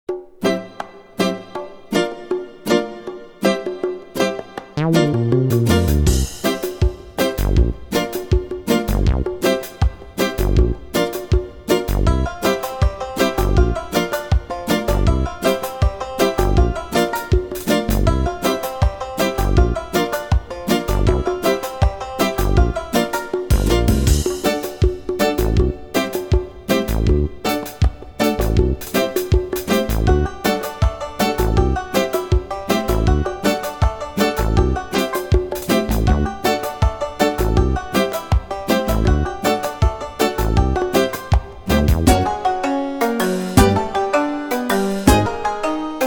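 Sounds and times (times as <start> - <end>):
background music: 0.1 - 46.0.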